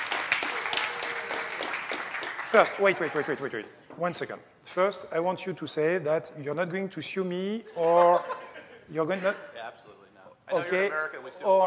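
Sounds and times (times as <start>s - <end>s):
audience applause: 0.0s - 3.5s
speech: 2.5s - 11.6s
laughter: 7.7s - 9.4s.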